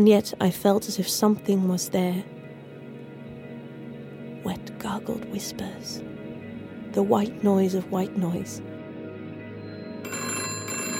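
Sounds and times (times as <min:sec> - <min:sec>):
speech: 0:00.0 - 0:02.4, 0:04.4 - 0:06.1, 0:06.9 - 0:08.7
telephone bell ringing: 0:09.6 - 0:10.9.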